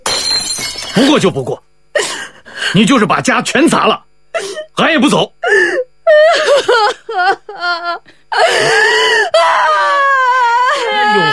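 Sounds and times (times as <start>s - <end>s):
speech: 1.0s - 1.6s, 2.7s - 4.1s, 4.8s - 9.7s
woman wailing and sobbing: 5.4s - 11.3s.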